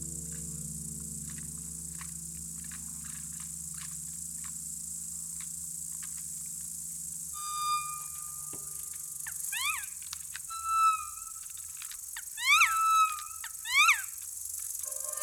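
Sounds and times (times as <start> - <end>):
black woodpecker giving loud harmonic-rich calls: 7.4 - 15.2.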